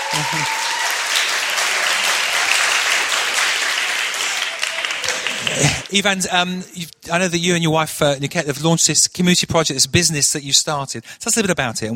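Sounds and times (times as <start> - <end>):
audience applause: 0.0 - 5.9
speech: 0.2 - 0.6, 5.6 - 11.9.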